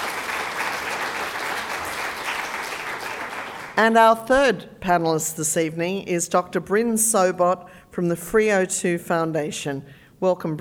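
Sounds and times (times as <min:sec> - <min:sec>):
audience applause: 0:00.0 - 0:03.8
speech: 0:03.8 - 0:10.5.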